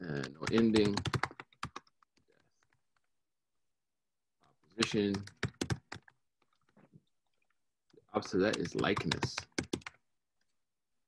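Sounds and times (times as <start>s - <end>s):
speech: 0.1s - 1.2s, 4.9s - 5.4s, 8.2s - 9.5s
typing on a computer keyboard: 0.1s - 2.0s, 4.8s - 6.2s, 8.2s - 10.0s.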